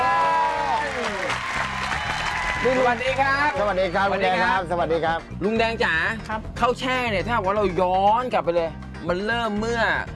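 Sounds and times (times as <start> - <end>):
applause welcoming a guest: 0.0 - 3.7
speech: 2.6 - 10.1.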